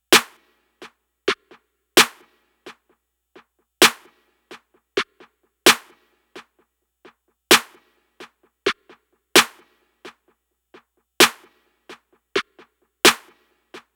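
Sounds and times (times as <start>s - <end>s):
hand clap: 3.8s - 13.9s.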